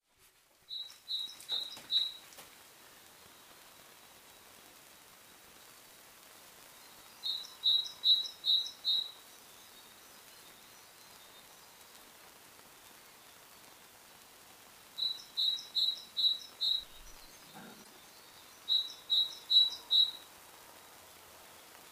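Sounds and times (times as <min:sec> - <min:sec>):
background hiss: 0:00.0 - 0:21.8
great tit calls: 0:00.7 - 0:02.2, 0:07.2 - 0:09.2, 0:15.0 - 0:20.3.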